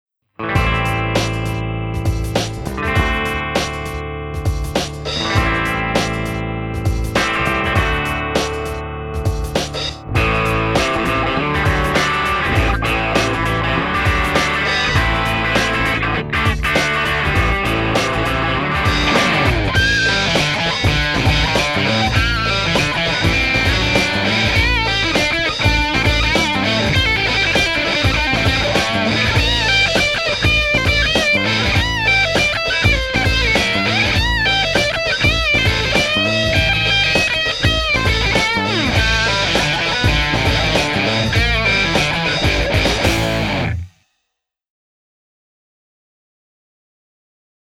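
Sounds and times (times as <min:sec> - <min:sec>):
distortion effect: 0:00.4 - 0:44.0.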